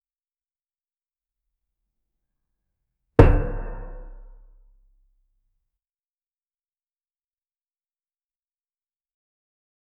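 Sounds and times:
trident hitting stone floor: 3.2s - 4.4s.

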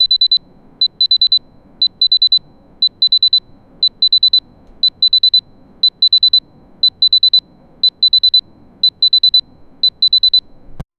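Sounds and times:
heart monitor beeping in a hospital: 0.0s - 10.6s.

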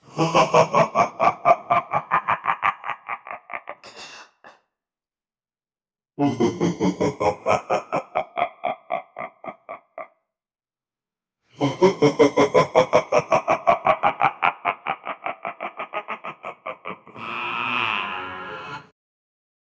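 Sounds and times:
evil laugh: 0.1s - 4.5s, 6.2s - 10.1s, 11.6s - 18.9s.

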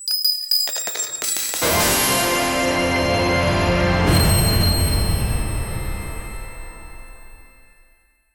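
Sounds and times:
magical shimmer: 0.1s - 7.8s
victory sound for knight: 1.6s - 6.9s.

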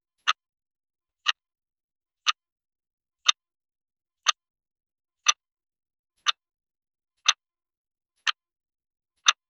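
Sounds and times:
faint ticking clock: 0.2s - 0.5s, 1.2s - 1.6s, 2.2s - 2.6s, 3.2s - 3.6s, 4.2s - 4.5s, 5.2s - 5.6s, 6.2s - 6.5s, 7.2s - 7.5s, 8.2s - 8.6s, 9.2s - 9.4s.

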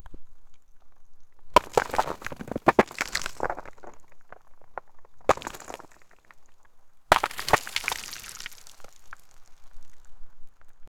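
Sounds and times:
hard rock hitting rocks: 1.5s - 10.1s.

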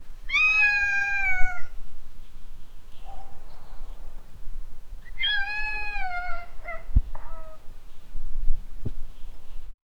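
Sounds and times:
cats meowing: 0.3s - 1.8s, 5.0s - 7.7s.

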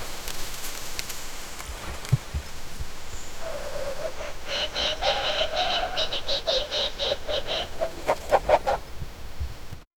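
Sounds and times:
rabbit breathing heavily: 3.5s - 8.8s.

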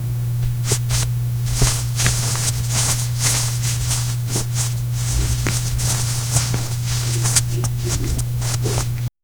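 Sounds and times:
clothing rustling: 0.5s - 9.2s.

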